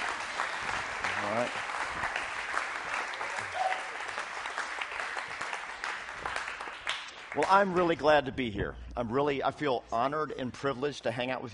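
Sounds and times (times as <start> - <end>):
audience applause: 0.0 - 7.8
speech: 7.4 - 11.5.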